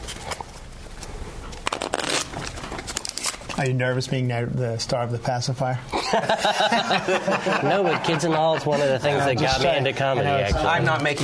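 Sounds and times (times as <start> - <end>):
deck of cards being shuffled: 0.0 - 3.6
speech: 3.6 - 11.2
laughter: 5.9 - 10.9.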